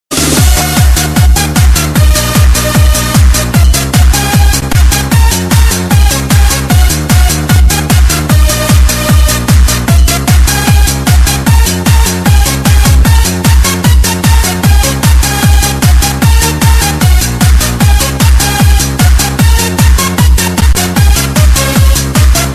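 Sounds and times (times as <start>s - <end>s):
DJ music: 0.1s - 22.5s.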